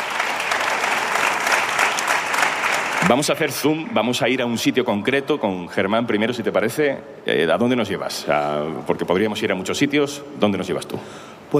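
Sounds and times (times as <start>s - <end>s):
audience applause: 0.0s - 4.0s
speech: 3.1s - 11.5s.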